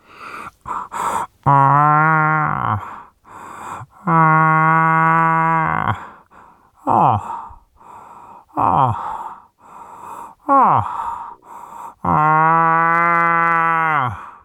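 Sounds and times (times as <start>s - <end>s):
breathy grunts and gasps: 0.0s - 14.4s
man imitating a bull moose rutting call: 1.0s - 2.9s, 4.0s - 6.1s, 10.4s - 14.4s.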